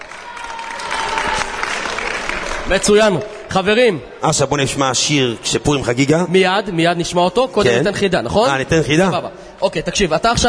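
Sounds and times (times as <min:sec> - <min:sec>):
live audience cheering and applauding: 0:00.0 - 0:03.2
speech: 0:02.7 - 0:10.4.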